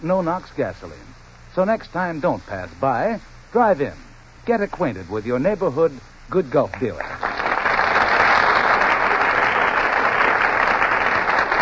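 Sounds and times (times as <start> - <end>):
speech: 0.0 - 7.4
audience applause: 7.0 - 11.6.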